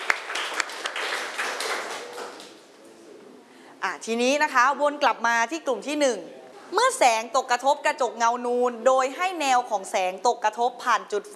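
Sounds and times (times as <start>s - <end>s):
applause from students: 0.0s - 2.6s
speech: 3.8s - 11.3s.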